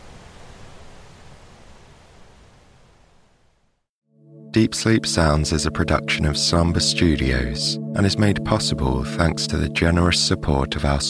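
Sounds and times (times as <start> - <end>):
roaring Gullfoss Waterfall: 0.0 - 2.8
speech: 4.6 - 11.0.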